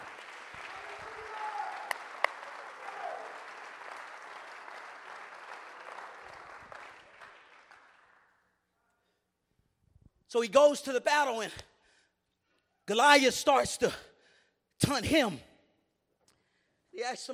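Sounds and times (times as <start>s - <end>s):
audience clapping hands: 0.0s - 8.5s
speech: 10.3s - 11.7s, 12.9s - 14.1s, 14.8s - 15.5s, 17.0s - 17.3s.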